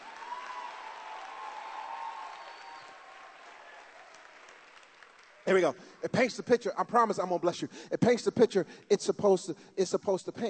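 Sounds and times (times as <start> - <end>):
audience clapping: 0.0 - 6.1
speech: 5.5 - 10.4.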